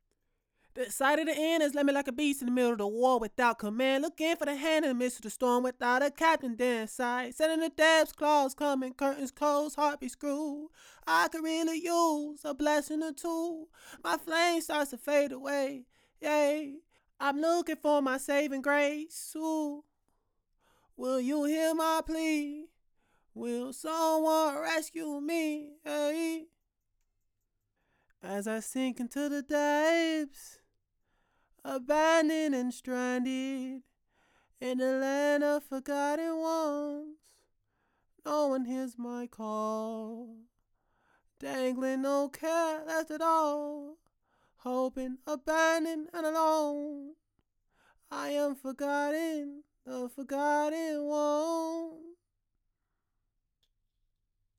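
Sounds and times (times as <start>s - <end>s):
a cappella vocals in A minor: 0.0s - 20.0s, 20.6s - 26.6s, 28.1s - 52.3s.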